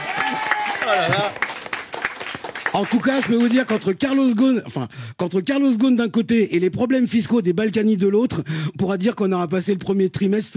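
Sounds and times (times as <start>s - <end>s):
audience applause at a comedy show: 0.0s - 4.2s
speech: 0.9s - 1.4s, 2.8s - 10.5s.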